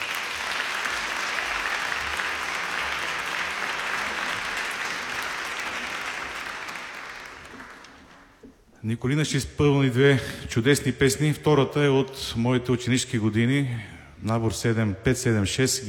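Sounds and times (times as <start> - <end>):
audience applause: 0.0 - 8.5
speech: 8.8 - 15.8.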